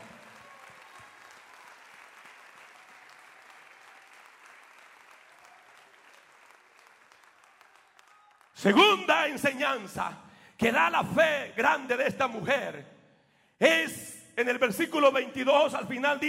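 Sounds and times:
audience applauding: 0.0 - 8.9
speech: 8.6 - 12.9, 13.6 - 16.2.

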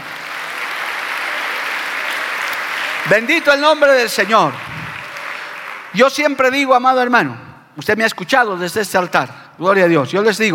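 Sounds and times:
audience applause: 0.0 - 6.2
speech: 3.0 - 4.7, 5.9 - 10.5.

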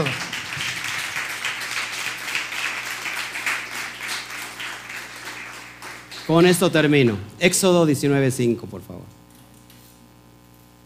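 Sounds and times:
audience applause: 0.0 - 7.2
speech: 6.3 - 9.2.

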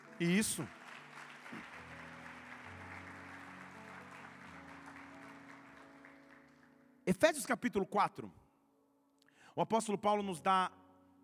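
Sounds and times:
audience applauding: 0.0 - 6.9
speech: 0.2 - 0.8, 7.1 - 8.4, 9.6 - 10.8.

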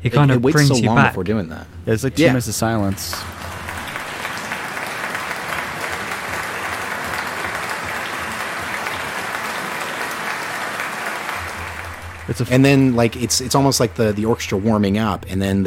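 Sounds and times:
speech: 0.0 - 3.5, 12.3 - 15.6
applause at end of album: 2.8 - 15.6.

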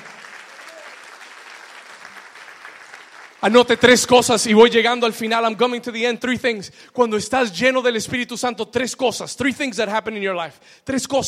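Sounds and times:
audience applause: 0.0 - 4.2
speech: 3.4 - 11.2.

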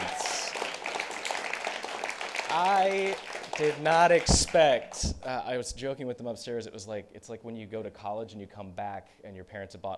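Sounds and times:
round of applause: 0.0 - 5.0
speech: 2.5 - 9.9.

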